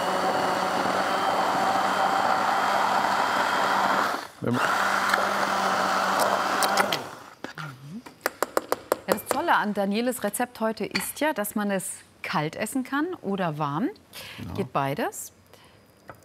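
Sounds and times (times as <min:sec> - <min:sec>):
kitchen blender mixing food: 0:00.0 - 0:07.3
speech: 0:04.4 - 0:04.8, 0:09.6 - 0:15.4.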